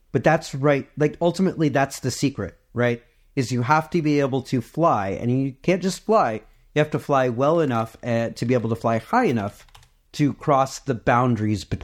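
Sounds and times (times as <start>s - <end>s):
speech: 0.1s - 11.8s
typing a search on a computer keyboard: 9.3s - 10.0s.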